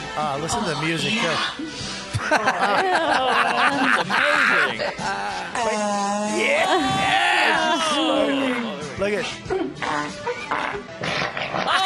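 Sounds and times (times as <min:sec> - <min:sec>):
speech: 0:00.2 - 0:11.8
laughter: 0:02.1 - 0:05.7
fart: 0:09.8 - 0:11.8.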